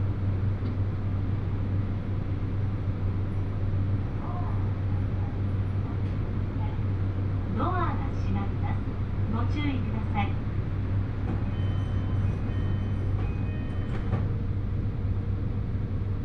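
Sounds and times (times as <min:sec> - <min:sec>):
Hōhi Line 821 series train rumble and hum: 0:00.0 - 0:16.2.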